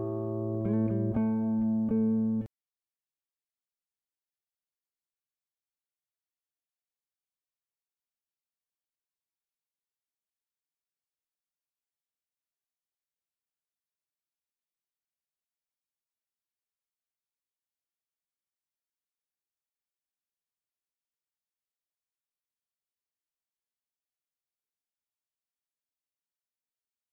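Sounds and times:
Am60 guitar improvisation: 0:00.0 - 0:02.5.

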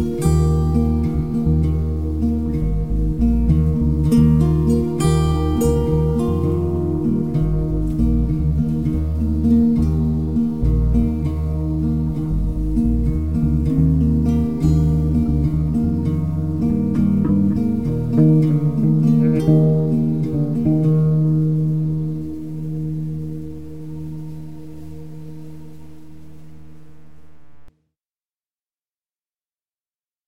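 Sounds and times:
acoustic guitar chill groove: 0:00.0 - 0:24.2.

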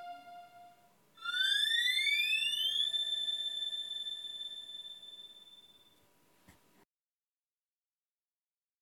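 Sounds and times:
Casio keyboard synth: 0:00.0 - 0:05.8.

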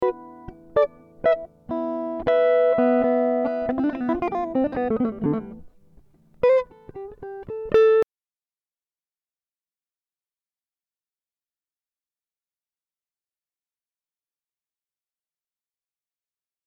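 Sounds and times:
Am60 guitar improvisation: 0:00.0 - 0:08.0.

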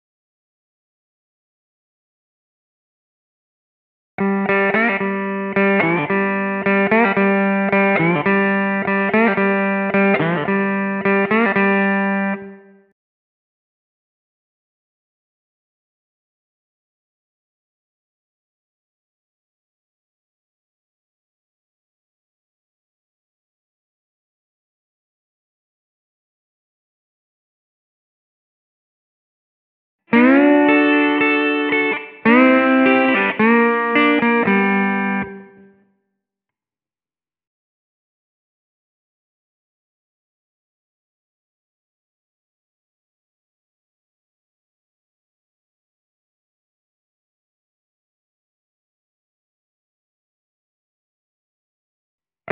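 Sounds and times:
slide guitar in G at 110 BPM: 0:04.2 - 0:12.5, 0:30.1 - 0:35.6.

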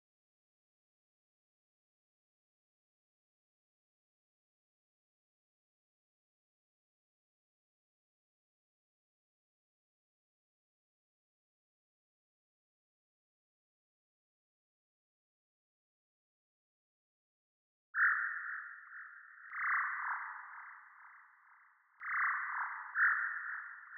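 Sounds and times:
jungle bird: 0:18.0 - 0:23.9.

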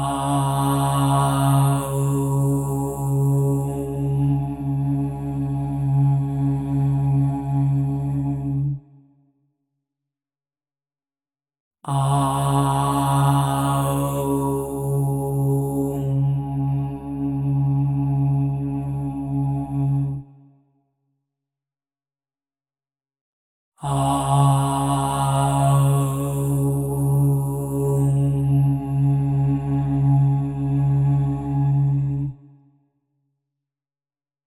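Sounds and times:
OM tone at 136.1 Hz: 0:00.0 - 0:08.8, 0:11.9 - 0:20.2, 0:23.8 - 0:32.3.

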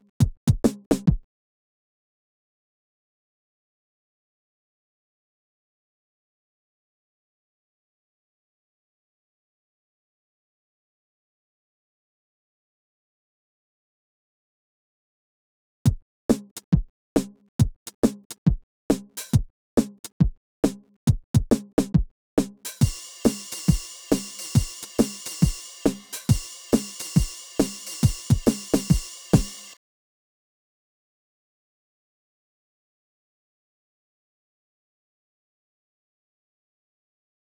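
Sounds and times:
drums: 0:00.2 - 0:01.2, 0:15.9 - 0:29.8.

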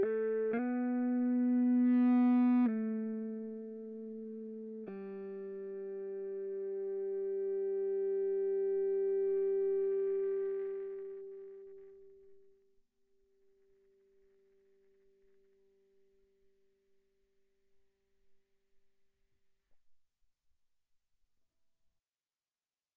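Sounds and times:
ebow guitar chorus: 0:00.0 - 0:11.6.

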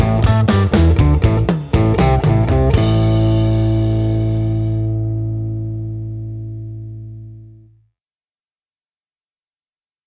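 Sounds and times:
musical trio: 0:00.0 - 0:05.4.

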